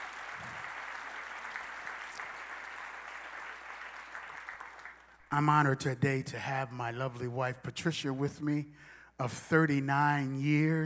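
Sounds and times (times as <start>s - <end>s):
audience applauding: 0.0s - 5.3s
speech: 5.3s - 10.8s.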